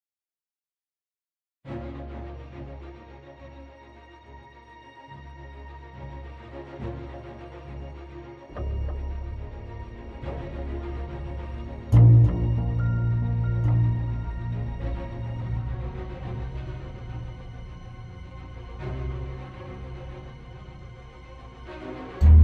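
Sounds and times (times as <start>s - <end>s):
tense music loop: 8.5s - 22.4s.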